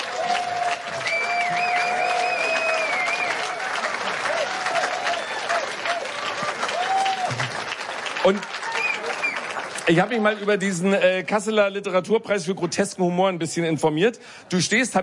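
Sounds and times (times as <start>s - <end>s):
audience applause: 0.0s - 10.8s
speech: 8.2s - 8.5s, 9.9s - 15.0s.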